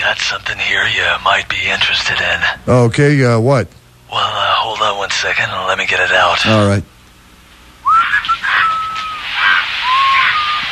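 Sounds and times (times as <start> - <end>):
speech: 0.0 - 6.9
bird squawking and whistling: 7.8 - 10.6.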